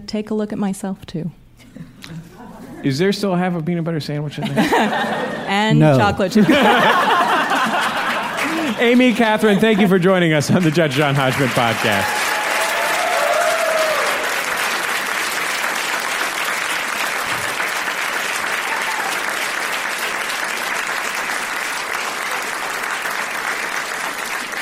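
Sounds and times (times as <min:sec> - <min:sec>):
speech: 0:00.1 - 0:01.9, 0:02.8 - 0:07.2, 0:08.8 - 0:12.2
laughter: 0:01.7 - 0:02.9, 0:04.3 - 0:12.1
audience applause: 0:06.4 - 0:24.6.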